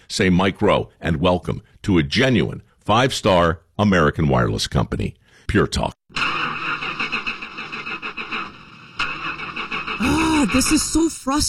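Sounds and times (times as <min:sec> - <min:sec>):
speech: 0:00.1 - 0:06.2, 0:10.0 - 0:11.4
car engine cranking but failing to start: 0:06.1 - 0:11.3.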